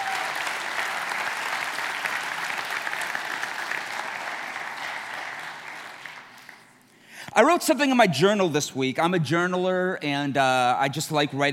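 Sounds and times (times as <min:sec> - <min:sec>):
audience applause, hand clapping: 0:00.0 - 0:06.8
speech: 0:07.4 - 0:11.5.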